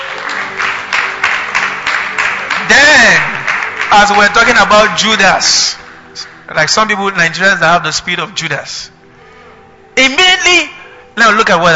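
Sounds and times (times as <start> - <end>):
audience clapping: 0.0 - 7.0
speech: 2.7 - 8.9, 10.0 - 11.7.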